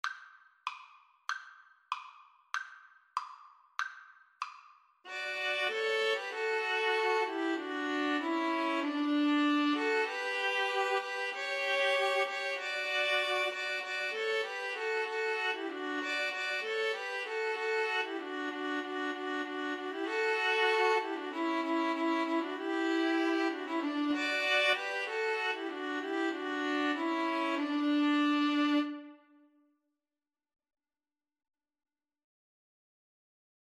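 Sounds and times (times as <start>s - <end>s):
string trio playing: 5.1s - 29.2s.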